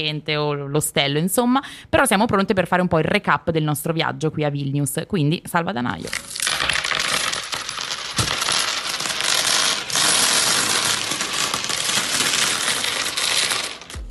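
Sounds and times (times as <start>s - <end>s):
speech: 0.0s - 6.6s
many small coins dropping: 6.2s - 14.0s.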